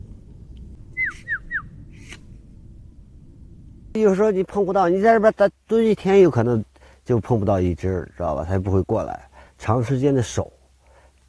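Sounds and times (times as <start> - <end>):
quiet low rumble: 0.0 - 4.5
bird calling with whistled notes: 0.9 - 2.2
speech: 4.0 - 10.6.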